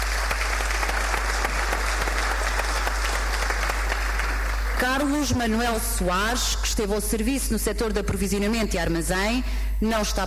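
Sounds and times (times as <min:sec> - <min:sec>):
audience applause: 0:00.0 - 0:05.0
speech: 0:04.8 - 0:10.2.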